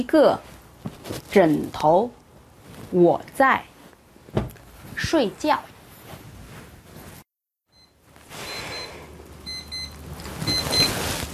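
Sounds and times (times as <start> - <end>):
speech: 0.0 - 2.2, 2.9 - 3.7, 5.0 - 5.7
alarm clock ringing: 7.7 - 11.0.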